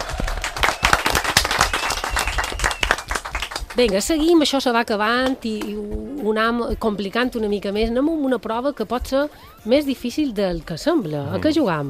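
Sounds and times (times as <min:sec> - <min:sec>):
applause: 0:00.0 - 0:03.8
speech: 0:03.8 - 0:11.8.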